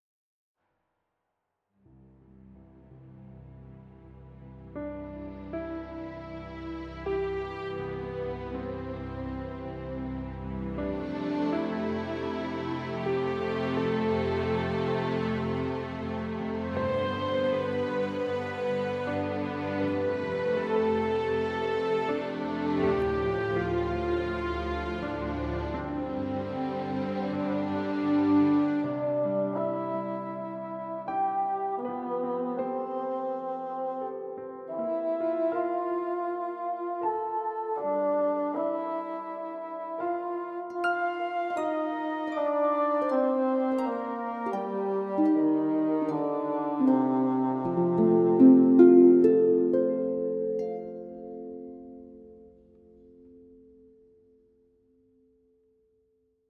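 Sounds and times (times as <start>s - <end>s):
romantic theme music: 2.1s - 54.0s.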